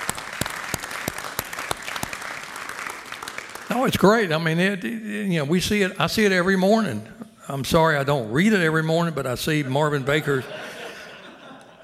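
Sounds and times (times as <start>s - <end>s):
audience round of applause: 0.0s - 4.2s
speech: 3.7s - 10.7s
laughter: 10.0s - 11.8s.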